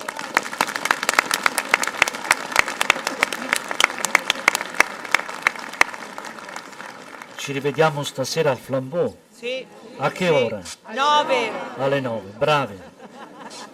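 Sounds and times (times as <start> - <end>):
audience applause: 0.0 - 8.1
laughter: 2.8 - 4.5, 11.1 - 13.7
speech: 7.4 - 12.9.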